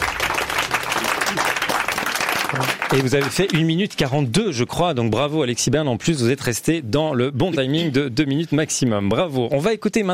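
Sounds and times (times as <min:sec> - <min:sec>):
audience applause: 0:00.0 - 0:03.7
speech: 0:02.9 - 0:10.1.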